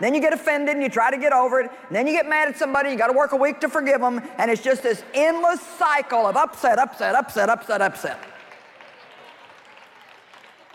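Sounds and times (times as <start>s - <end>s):
speech: 0.0s - 8.3s
audience clapping: 7.8s - 10.7s.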